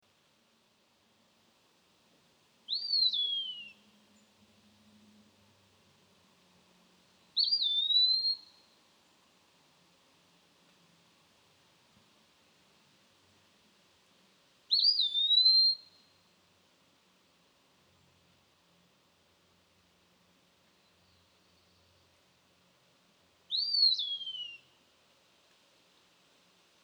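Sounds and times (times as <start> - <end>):
Eastern Wood Pewee Contopus virens whistling: 2.7 - 3.8, 7.4 - 8.5, 14.7 - 15.9, 23.5 - 24.7.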